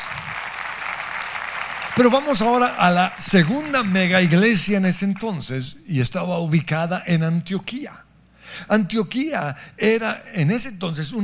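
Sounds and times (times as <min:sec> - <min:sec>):
audience applause: 0:00.0 - 0:05.3
speech: 0:02.0 - 0:08.0, 0:08.6 - 0:11.2.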